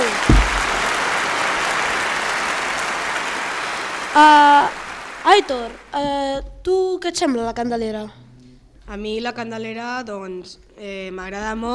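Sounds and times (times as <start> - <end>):
audience applause: 0.0 - 5.9
speech: 4.2 - 8.2, 8.9 - 11.7.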